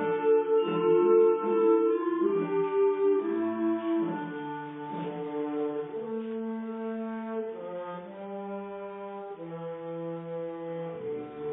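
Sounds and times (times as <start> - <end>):
band playing: 0.0 - 7.5
bassoons: 0.0 - 11.5.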